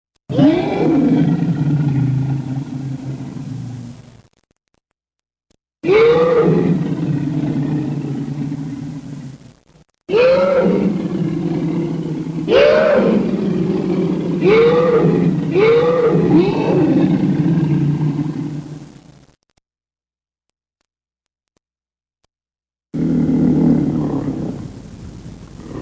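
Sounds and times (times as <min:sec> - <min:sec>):
monster: 0:00.3 - 0:04.0, 0:05.8 - 0:09.4, 0:10.1 - 0:18.8, 0:23.0 - 0:24.8.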